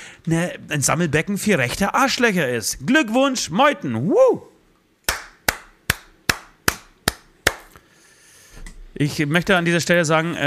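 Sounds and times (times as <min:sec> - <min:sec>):
speech: 0:00.2 - 0:04.5, 0:09.0 - 0:10.4
hand clapping: 0:05.1 - 0:07.8.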